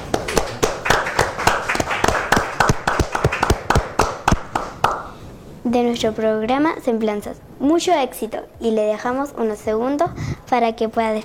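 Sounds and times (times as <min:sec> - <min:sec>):
small group clapping: 0:00.0 - 0:05.1
speech: 0:05.7 - 0:11.2.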